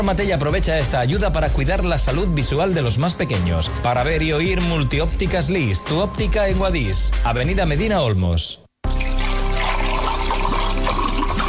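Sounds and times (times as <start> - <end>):
speech: 0.0 - 8.6
water trickling: 8.9 - 11.4.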